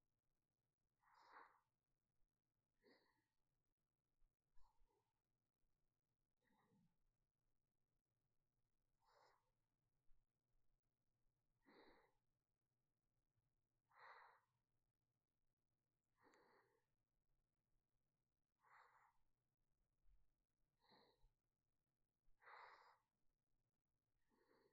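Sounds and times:
sleeping breath: 1.0s - 1.8s, 2.8s - 3.4s, 9.0s - 9.6s, 11.6s - 12.2s, 13.9s - 14.6s, 16.2s - 16.9s, 18.6s - 19.2s, 20.8s - 21.3s, 22.4s - 23.2s, 24.3s - 24.7s.

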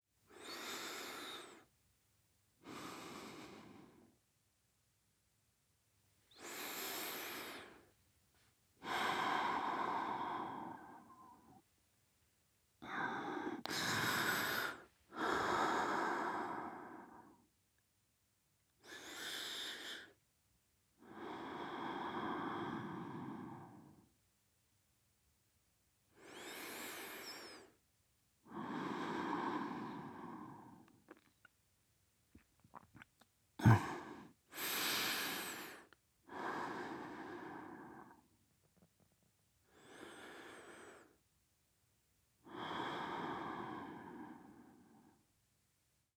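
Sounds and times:
person breathing in sleep: 0.3s - 1.7s, 2.6s - 4.1s, 6.3s - 7.9s, 8.8s - 11.6s, 12.8s - 17.4s, 21.0s - 24.0s, 26.2s - 27.8s, 28.5s - 30.9s, 33.6s - 38.3s, 39.7s - 41.2s, 42.5s - 45.2s.

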